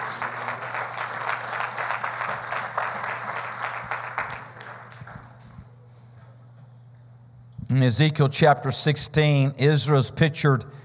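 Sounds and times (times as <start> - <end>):
audience clapping hands: 0.0 - 5.6
speech: 7.7 - 10.8.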